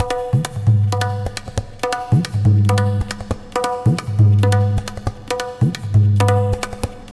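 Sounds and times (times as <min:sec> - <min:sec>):
tabla: 0:00.0 - 0:07.1.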